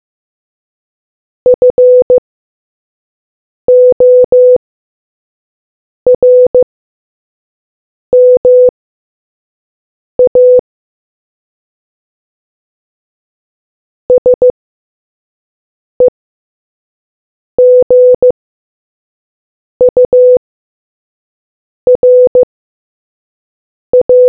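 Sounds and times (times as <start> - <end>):
morse code beeps: 1.6 - 2.2, 3.7 - 4.6, 6.2 - 6.6, 8.2 - 8.7, 10.2 - 10.6, 14.1 - 14.5, 17.6 - 18.3, 19.8 - 20.4, 21.9 - 22.5, 24.0 - 24.2.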